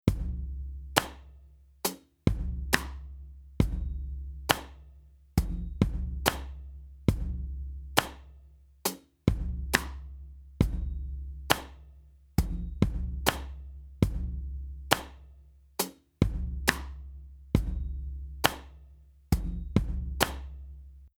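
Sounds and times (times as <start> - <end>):
drums: 0.0 - 1.2, 1.8 - 4.8, 5.4 - 8.2, 8.8 - 11.7, 12.4 - 15.2, 15.8 - 18.7, 19.3 - 20.5.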